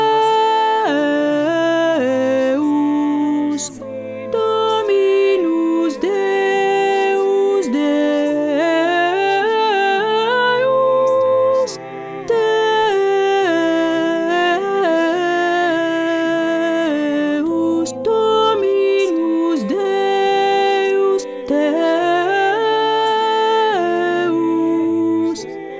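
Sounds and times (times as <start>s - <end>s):
first alto voice singing a mass: 0.0s - 25.7s.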